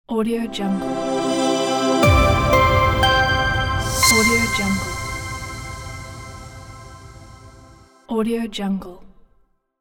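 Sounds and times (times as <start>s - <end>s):
logo intro jingle: 0.5s - 7.8s.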